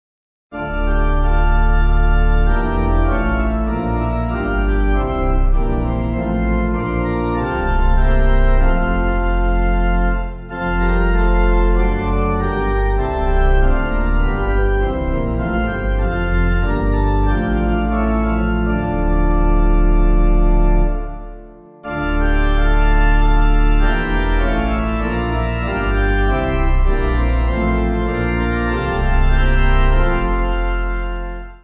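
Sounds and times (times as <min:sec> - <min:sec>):
pipe playing a carol: 0:00.6 - 0:31.6.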